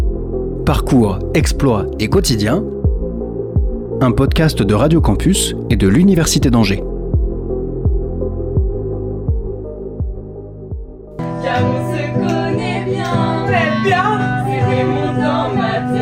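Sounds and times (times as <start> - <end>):
speech: 0.7 - 2.7, 4.0 - 6.9
heartbeat-like thumping pulses: 2.8 - 4.4, 7.1 - 11.1
stage musical arrangement: 11.2 - 15.9.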